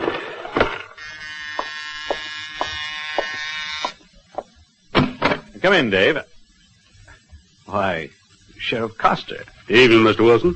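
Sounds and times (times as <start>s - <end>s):
electric doorbell buzzing: 1.0s - 3.9s
speech: 5.6s - 6.3s, 7.7s - 10.5s.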